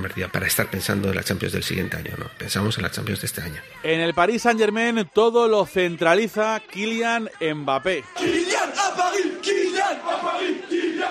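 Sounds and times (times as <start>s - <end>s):
speech: 0.1s - 11.1s
large crowd of football ultras chanting a player's name: 6.6s - 11.1s.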